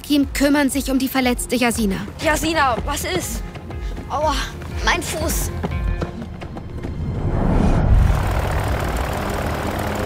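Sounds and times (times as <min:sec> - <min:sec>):
speech: 0:00.1 - 0:03.5, 0:04.1 - 0:05.7
airplane engine starting up in a hangar: 0:07.3 - 0:10.0.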